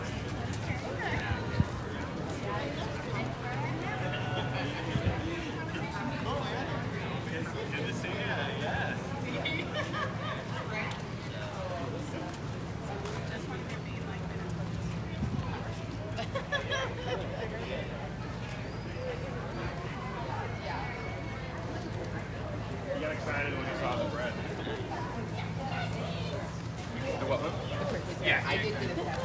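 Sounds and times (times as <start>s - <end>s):
murmur of voices at a farmers market: 0.0s - 29.2s
laughter: 8.9s - 11.0s, 15.9s - 18.0s, 27.0s - 29.2s.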